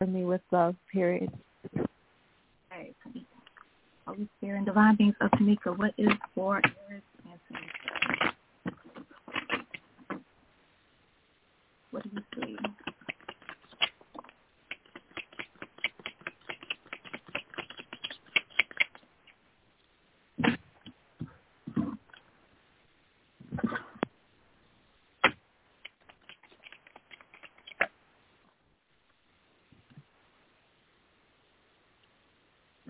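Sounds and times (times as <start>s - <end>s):
speech: 0.0s - 1.8s, 4.1s - 7.7s
oracle cards shuffled and drawn from a deck: 7.6s - 10.2s, 12.2s - 19.0s, 25.2s - 27.9s.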